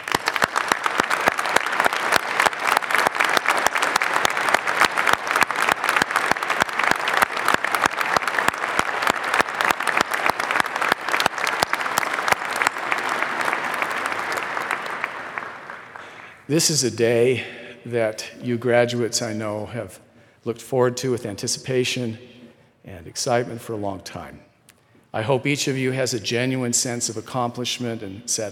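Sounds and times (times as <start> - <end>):
audience applause for graduates: 0.0 - 16.5
speech: 16.5 - 22.3, 23.2 - 24.5, 25.2 - 28.4.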